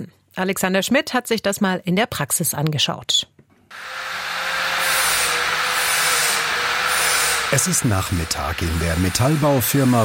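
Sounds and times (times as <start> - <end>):
speech: 0.0 - 4.0, 7.5 - 10.0
grinding tool grinding down metal stair railings: 3.7 - 10.0.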